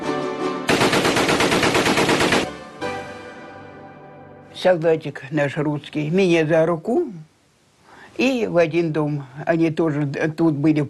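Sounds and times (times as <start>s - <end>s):
submachine gun fire: 0.7s - 2.6s
speech: 4.6s - 7.3s, 8.2s - 10.8s.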